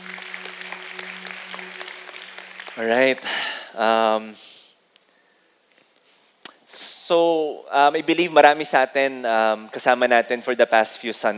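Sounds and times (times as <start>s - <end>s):
audience clapping: 0.0s - 3.8s
speech: 2.8s - 4.5s, 7.1s - 11.3s.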